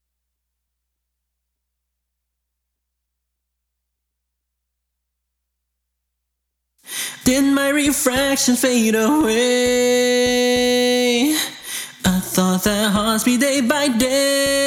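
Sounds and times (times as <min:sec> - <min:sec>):
person singing: 0:06.9 - 0:14.6.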